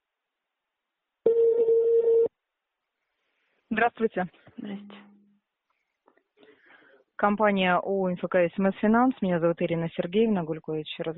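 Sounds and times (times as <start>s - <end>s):
telephone line tone while connecting to operator: 1.3s - 2.3s
speech: 3.8s - 5.0s, 7.2s - 11.1s.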